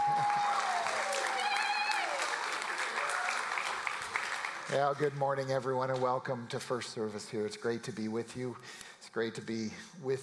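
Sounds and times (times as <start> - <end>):
audience applause: 0.0 - 5.2
speech: 4.7 - 10.2.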